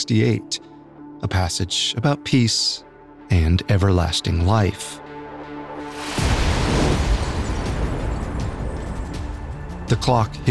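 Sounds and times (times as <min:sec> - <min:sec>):
speech: 0:00.1 - 0:05.0, 0:09.9 - 0:10.4
pile of explosives detonating under a podium: 0:05.9 - 0:09.2.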